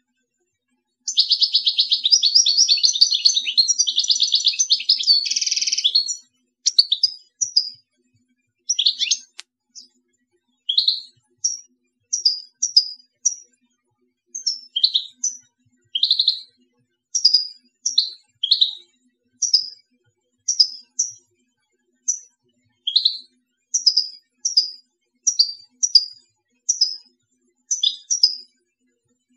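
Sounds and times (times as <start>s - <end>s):
European goldfinch twittering: 1.1s - 7.7s, 8.7s - 9.9s, 10.7s - 13.4s, 14.4s - 15.4s, 16.0s - 16.4s, 17.2s - 18.7s, 19.4s - 19.7s, 20.5s - 21.2s, 22.9s - 23.2s, 25.3s - 26.1s, 27.7s - 28.4s
faint click: 9.2s - 9.6s.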